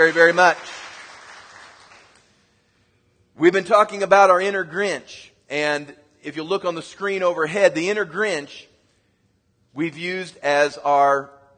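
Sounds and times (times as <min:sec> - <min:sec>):
speech: 0:00.0 - 0:00.7, 0:03.4 - 0:08.7, 0:09.8 - 0:11.4
audience clapping: 0:00.0 - 0:02.4.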